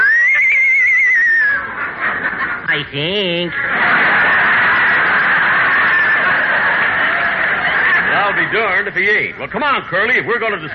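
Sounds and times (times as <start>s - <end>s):
horse neighing: 0.0s - 1.6s
laughter: 0.0s - 10.7s
speech: 2.8s - 4.0s, 8.3s - 10.7s.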